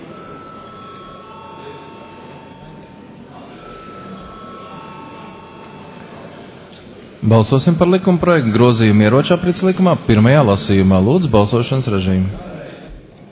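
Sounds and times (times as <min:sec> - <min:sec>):
parliament voting electric bell ringing: 0:00.0 - 0:06.8
murmur of voices: 0:00.0 - 0:13.3
speech: 0:07.3 - 0:12.5.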